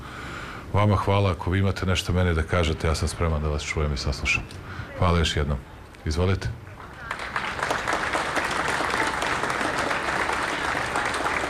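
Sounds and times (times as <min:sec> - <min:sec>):
speech: 0:00.7 - 0:06.7
applause from a gathered crowd: 0:06.8 - 0:11.4.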